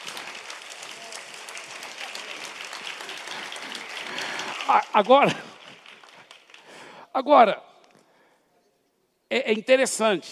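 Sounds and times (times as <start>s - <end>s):
audience round of applause: 0.0s - 7.0s
speech: 4.7s - 5.5s, 7.2s - 7.6s, 9.3s - 10.3s.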